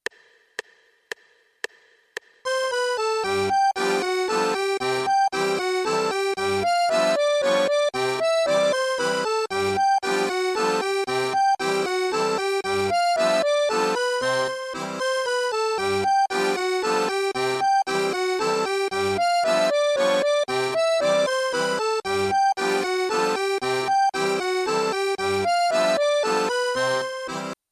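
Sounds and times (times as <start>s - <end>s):
accordion playing Tyrolean-style music: 2.4s - 27.6s.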